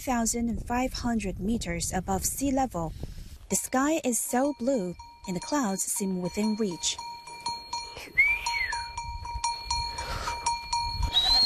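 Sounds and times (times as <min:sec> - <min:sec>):
speech: 0:00.0 - 0:07.1
sheep and goat bells clanking: 0:03.5 - 0:11.4
person whistling: 0:07.9 - 0:08.9, 0:11.0 - 0:11.4.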